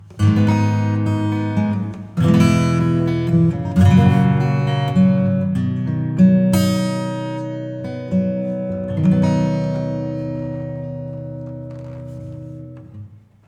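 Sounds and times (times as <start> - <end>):
acoustic music: 0.0 - 13.4.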